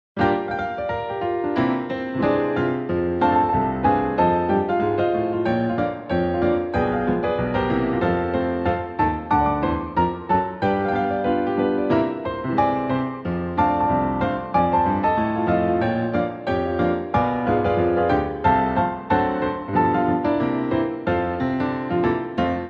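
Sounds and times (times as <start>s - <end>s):
music: 0.2s - 22.6s.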